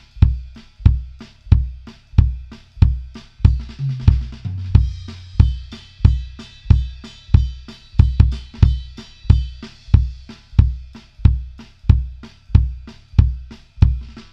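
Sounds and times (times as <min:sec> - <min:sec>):
kick drums: 0:00.0 - 0:14.3.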